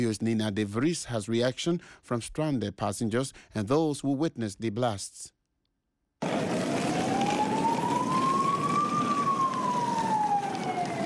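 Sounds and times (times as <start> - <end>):
speech: 0.0 - 5.4
emergency vehicle sirens wailing on city streets of Brussels: 6.2 - 11.0.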